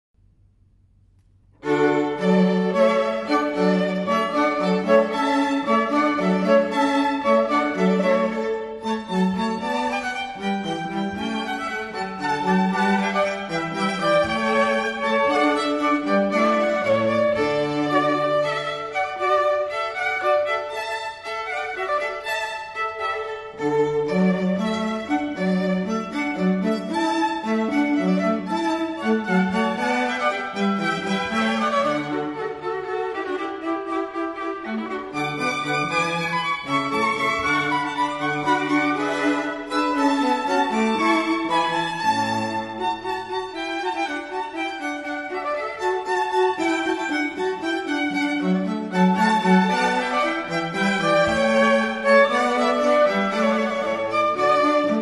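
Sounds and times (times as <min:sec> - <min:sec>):
string quartet playing hornpipe: 0:01.6 - 0:55.0.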